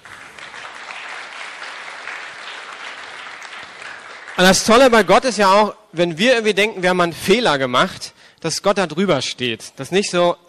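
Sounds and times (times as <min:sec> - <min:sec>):
audience clapping: 0:00.0 - 0:05.2
speech: 0:04.4 - 0:10.4.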